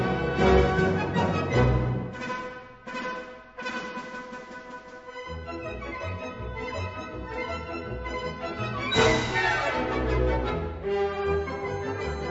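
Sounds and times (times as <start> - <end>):
polka music: 0.0 - 12.2.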